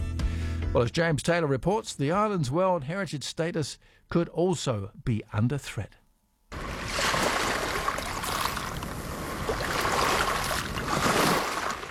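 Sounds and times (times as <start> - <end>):
speech: 0.7 - 6.0
boat ride from the mainland: 6.5 - 11.8.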